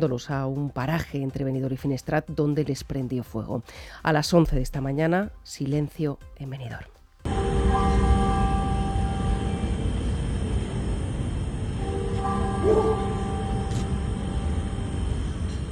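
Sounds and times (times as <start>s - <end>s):
speech: 0.0s - 7.0s
church bells ringing in Benidorm: 7.3s - 15.7s.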